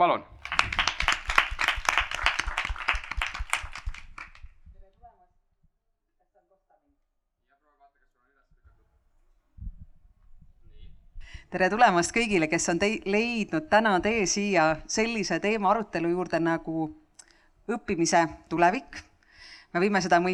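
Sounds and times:
speech: 0.0s - 0.6s, 11.5s - 17.0s, 17.7s - 19.1s, 19.7s - 20.3s
audience applause: 0.4s - 4.6s.

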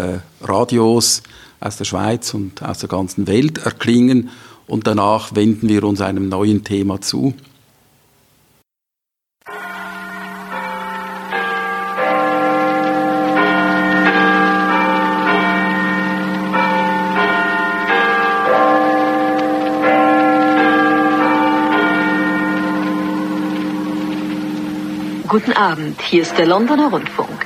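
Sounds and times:
speech: 0.0s - 7.5s, 25.3s - 27.4s
Big Ben London clock tower bell striking eight o'clock: 9.4s - 27.4s.

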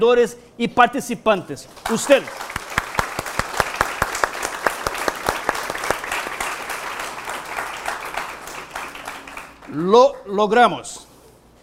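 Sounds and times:
speech: 0.0s - 2.5s, 9.8s - 11.0s
audience applause: 1.7s - 9.9s.

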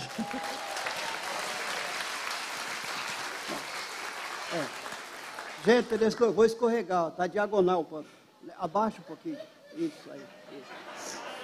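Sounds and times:
laughter: 0.0s - 0.6s, 9.2s - 11.4s
crowd applauding: 0.0s - 6.4s
speech: 4.6s - 4.8s, 5.6s - 10.8s.

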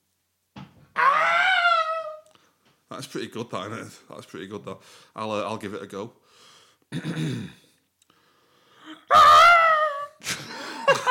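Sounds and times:
voice imitating the Wilhelm scream: 1.0s - 2.3s, 8.9s - 10.2s
speech: 2.9s - 7.6s.

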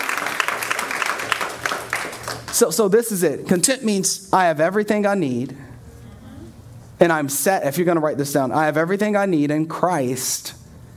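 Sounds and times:
audience clapping: 0.0s - 2.8s
speech: 2.5s - 5.6s, 7.0s - 10.6s.

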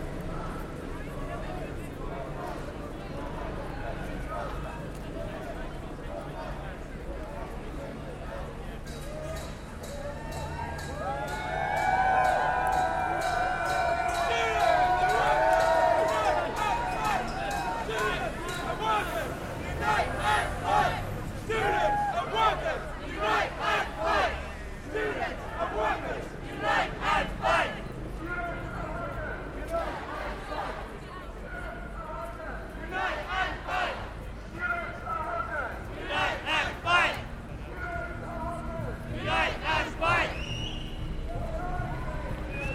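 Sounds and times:
crowd murmuring at a student demonstration against cuts: 0.0s - 42.7s
people calling and shouting: 10.2s - 27.8s, 39.2s - 40.4s.

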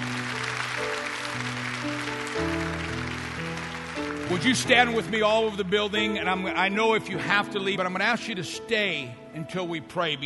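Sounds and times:
audience clapping: 0.0s - 5.7s
organ-like chords: 0.0s - 10.2s
speech: 4.3s - 10.2s.

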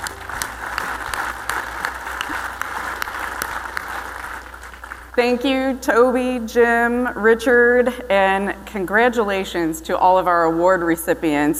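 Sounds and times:
audience applause: 0.0s - 5.2s
speech: 5.2s - 11.5s.

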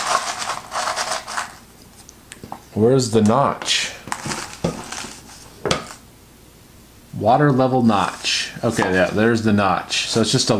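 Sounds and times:
plastic packet rustling as pulled out of a cup: 0.0s - 2.1s, 4.0s - 6.0s
speech: 2.8s - 3.8s, 7.2s - 10.5s.

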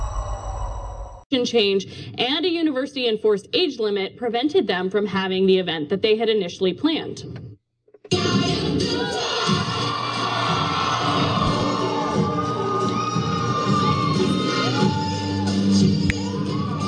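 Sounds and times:
speech: 1.3s - 8.2s
lively crowd cheering at a drag show and story hour: 8.1s - 16.8s.

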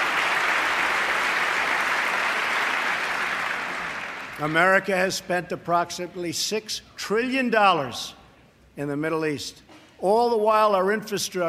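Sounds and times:
crowd applauding during a speech: 0.0s - 4.7s
speech: 4.4s - 8.2s, 8.8s - 11.4s.

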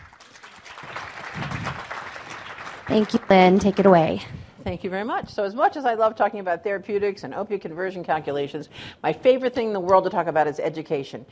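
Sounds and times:
audience applause welcoming a faculty speaker at a clinical education session: 0.0s - 4.2s
speech: 2.9s - 11.3s.

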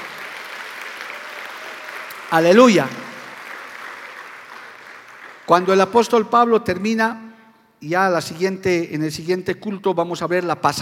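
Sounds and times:
audience applauding: 0.0s - 6.1s
speech: 2.3s - 3.0s, 5.5s - 7.2s, 7.8s - 10.8s.

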